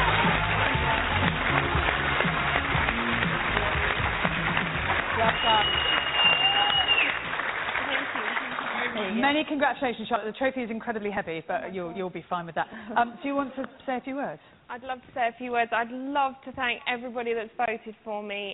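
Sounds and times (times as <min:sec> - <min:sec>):
crowd cheering: 0:00.0 - 0:09.1
audience applause: 0:00.0 - 0:09.2
speech: 0:09.4 - 0:18.5.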